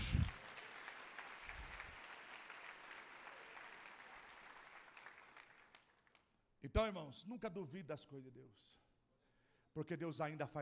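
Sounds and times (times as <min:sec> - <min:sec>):
audience applauding: 0:00.0 - 0:06.2
speech: 0:06.6 - 0:08.8, 0:09.8 - 0:10.6.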